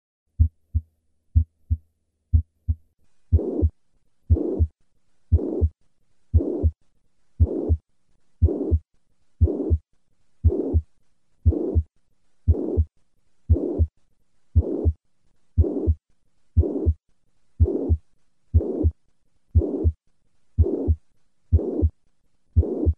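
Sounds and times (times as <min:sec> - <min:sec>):
systolic murmur of mitral regurgitation: 0:02.4 - 0:03.7, 0:04.3 - 0:04.7, 0:05.3 - 0:06.8, 0:07.4 - 0:07.8, 0:08.4 - 0:08.8, 0:09.4 - 0:09.8, 0:10.4 - 0:10.8, 0:11.4 - 0:11.9, 0:12.5 - 0:12.9, 0:13.5 - 0:13.9, 0:14.6 - 0:15.0, 0:15.6 - 0:16.0, 0:16.6 - 0:17.0, 0:17.6 - 0:18.0, 0:18.6 - 0:19.0, 0:19.6 - 0:20.0, 0:20.6 - 0:21.9, 0:22.6 - 0:22.9.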